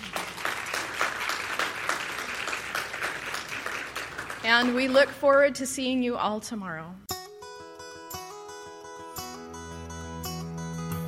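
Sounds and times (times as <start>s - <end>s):
audience applauding: 0.0s - 5.2s
speech: 4.4s - 7.1s.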